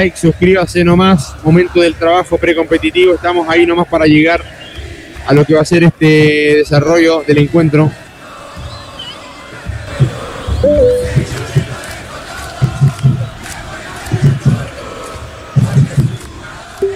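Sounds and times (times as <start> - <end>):
speech: 0.0 - 4.6, 5.2 - 8.0, 10.6 - 11.2
football crowd chanting at an Audax versus Colo Colo match: 0.0 - 16.9
low rhythmic drumming thumps: 9.6 - 12.0, 12.6 - 13.4, 14.1 - 14.8, 15.6 - 16.2.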